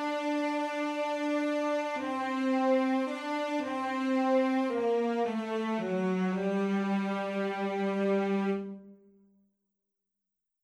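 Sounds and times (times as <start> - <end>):
tenor MIDI part: 0.0 - 9.1.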